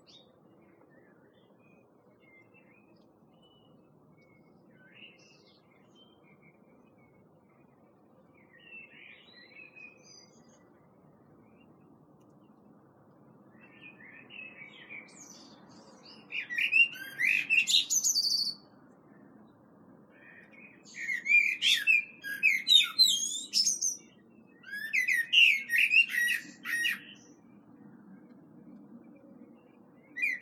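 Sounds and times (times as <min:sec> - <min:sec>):
common blackbird singing: 0:00.0 - 0:07.3, 0:08.3 - 0:10.8, 0:13.6 - 0:18.7, 0:20.2 - 0:27.4, 0:29.6 - 0:30.4.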